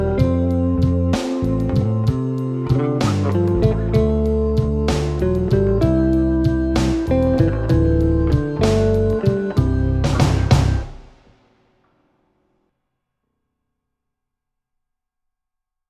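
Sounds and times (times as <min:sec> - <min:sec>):
blues bass: 0:00.0 - 0:11.1.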